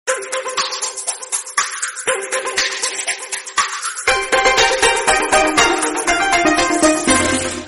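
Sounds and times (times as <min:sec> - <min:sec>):
Chinese ringtone: 0:00.1 - 0:07.6.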